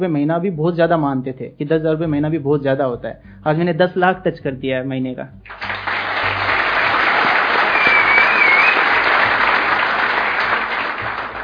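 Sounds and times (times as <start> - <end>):
speech: 0.0 - 5.7
audience whistling: 5.5 - 11.4.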